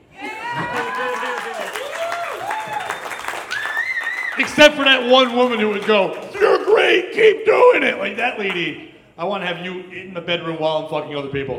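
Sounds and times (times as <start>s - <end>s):
audience applause: 0.3s - 7.0s
speech: 4.4s - 11.5s.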